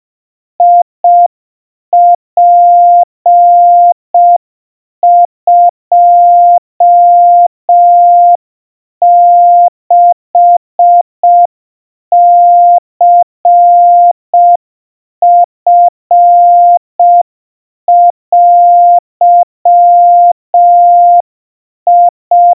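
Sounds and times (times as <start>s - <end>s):
700 Hz Morse code tones: 0.6s - 1.3s, 2.0s - 4.4s, 5.0s - 8.4s, 9.0s - 11.5s, 12.1s - 14.6s, 15.2s - 17.2s, 17.9s - 21.2s, 21.9s - 22.5s.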